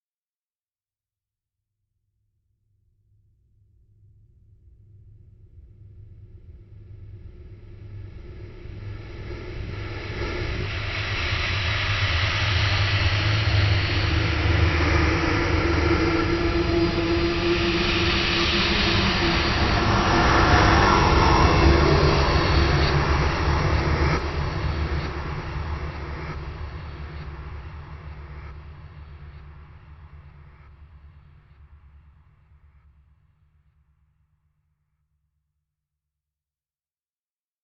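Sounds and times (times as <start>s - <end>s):
eerie swell: 5.5s - 32.8s.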